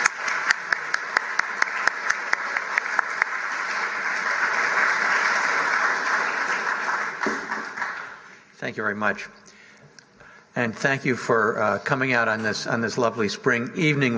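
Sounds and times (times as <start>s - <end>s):
audience applauding to welcome a speaker at the Boston Athenaeum: 0.0s - 8.3s
speech: 8.6s - 9.4s, 10.6s - 14.1s.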